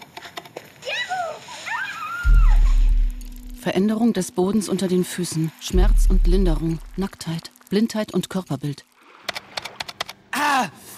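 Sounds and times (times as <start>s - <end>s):
children's high voices calling out: 0.8s - 2.8s
water splashing as someone wades into water at a beach: 1.3s - 10.1s
heavy low rumble: 2.3s - 3.8s, 5.7s - 7.3s
speech: 3.6s - 8.9s.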